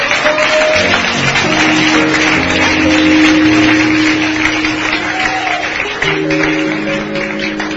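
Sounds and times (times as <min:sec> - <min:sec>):
audience clapping: 0:00.0 - 0:07.7.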